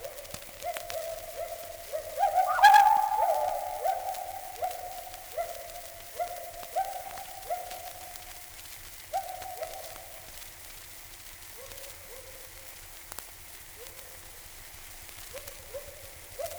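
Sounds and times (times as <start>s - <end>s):
gibbon call: 0.0s - 7.9s.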